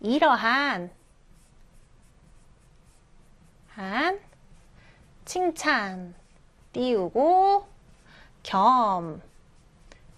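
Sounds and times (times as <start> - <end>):
speech: 0.0 - 1.0, 3.8 - 4.3, 5.3 - 6.2, 6.8 - 7.7, 8.4 - 9.3
pen scratching on paper while handwriting the Korean letter rieul: 0.3 - 10.1.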